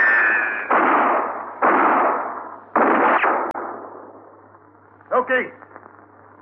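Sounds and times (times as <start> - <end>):
gunfire in a 1959 radio western shootout: 0.0 - 4.2.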